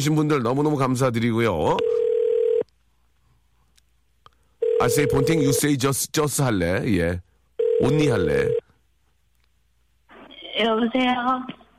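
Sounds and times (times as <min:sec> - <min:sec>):
speech: 0:00.0 - 0:02.1, 0:04.8 - 0:08.6, 0:10.6 - 0:11.6
telephone dial tone: 0:01.8 - 0:02.6, 0:04.6 - 0:05.6, 0:07.6 - 0:08.6.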